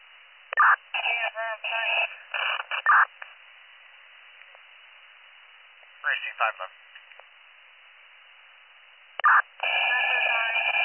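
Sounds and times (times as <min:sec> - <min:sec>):
radio dispatch cancellation tones: 0:00.6 - 0:03.1, 0:09.2 - 0:10.8
speech: 0:00.7 - 0:03.3, 0:06.0 - 0:06.8.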